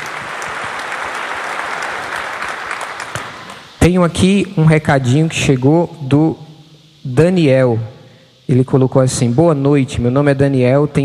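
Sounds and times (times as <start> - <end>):
audience applause: 0.0 - 3.8
speech: 3.9 - 6.4, 7.0 - 7.9, 8.5 - 11.0.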